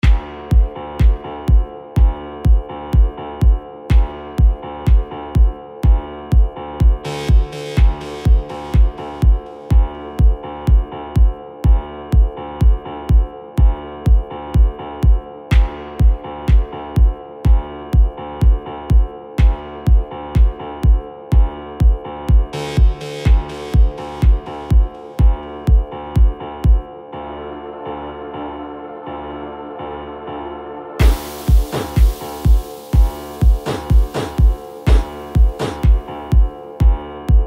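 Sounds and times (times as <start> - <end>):
broken beat music: 0.0 - 26.8, 31.0 - 37.4.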